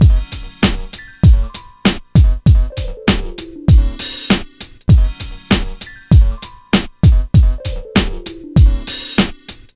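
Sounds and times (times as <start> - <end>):
hip hop and RnB drum beat: 0.0 - 9.7.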